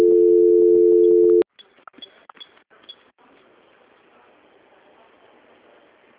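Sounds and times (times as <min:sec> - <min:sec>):
telephone tone during call transfer: 0:00.0 - 0:01.4.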